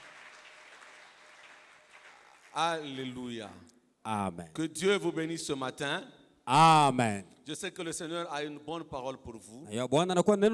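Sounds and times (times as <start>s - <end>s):
church congregation clapping for the Lord: 0.0s - 3.6s
speech: 2.6s - 10.5s.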